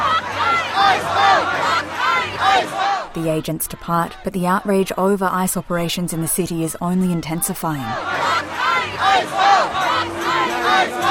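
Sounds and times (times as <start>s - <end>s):
crowd demanding federal agents leave: 0.0s - 4.3s, 7.8s - 11.0s
speech: 3.2s - 10.1s.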